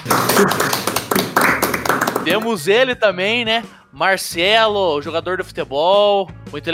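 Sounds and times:
audience clapping: 0.0 - 2.6
speech: 0.4 - 0.8, 2.3 - 6.7.

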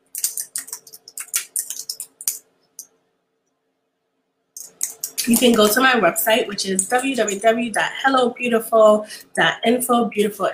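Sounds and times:
typing a website address on a computer keyboard: 0.0 - 2.9, 4.6 - 5.9
speech: 5.2 - 10.5.

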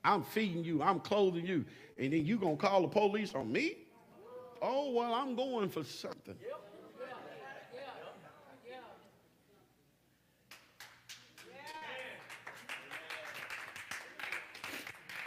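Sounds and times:
speech: 0.0 - 3.8, 4.6 - 6.7
audience clapping: 10.5 - 15.2.

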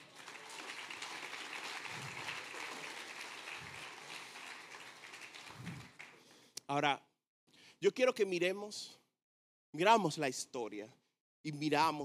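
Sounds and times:
audience applause: 0.0 - 6.3
speech: 6.7 - 7.0, 7.8 - 9.0, 9.7 - 12.0.

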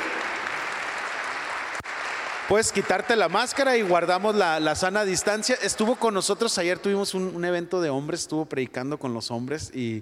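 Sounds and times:
audience applause: 0.0 - 6.7
speech: 2.5 - 10.0.

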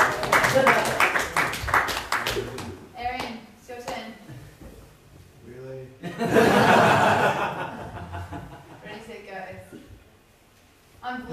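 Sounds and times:
group clapping in a steady rhythm: 0.0 - 4.1
laughter: 6.0 - 9.0.

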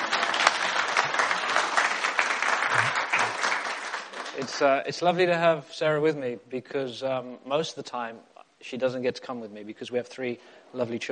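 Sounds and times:
audience applause welcoming a guest: 0.0 - 4.7
speech: 4.4 - 11.1.

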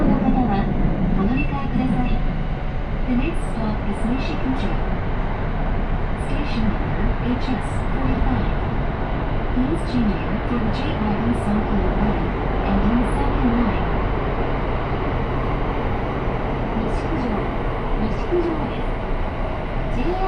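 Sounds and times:
train rumble on a train ride in Japan: 0.0 - 20.2.

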